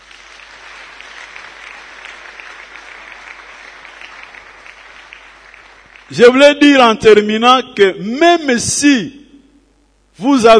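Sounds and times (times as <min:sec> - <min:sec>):
audience applauding: 0:00.0 - 0:06.2
speech: 0:06.1 - 0:09.2, 0:10.2 - 0:10.5.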